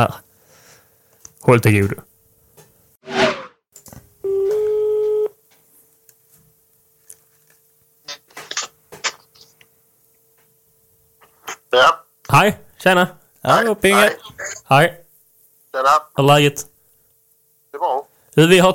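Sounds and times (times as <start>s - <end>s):
speech: 0.0s - 0.2s, 1.4s - 2.1s, 12.3s - 15.0s, 15.7s - 16.7s, 17.7s - 18.7s
telephone call tone electronic beep: 4.2s - 5.3s.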